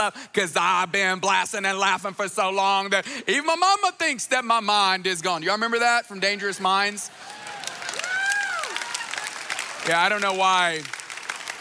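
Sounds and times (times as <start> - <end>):
speech: 0.0 - 7.4, 9.8 - 11.0
audience clapping: 6.8 - 11.5
drawn-out cheer or whoop: 7.1 - 10.0.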